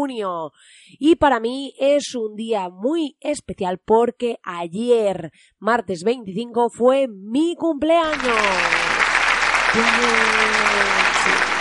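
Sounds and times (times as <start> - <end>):
speech: 0.0 - 8.8, 9.7 - 11.5
canned fake applause sound effect: 8.1 - 11.5.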